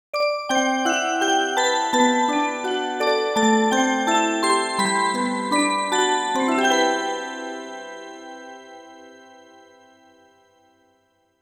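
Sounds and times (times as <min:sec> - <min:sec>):
music box jingle: 0:00.2 - 0:10.4.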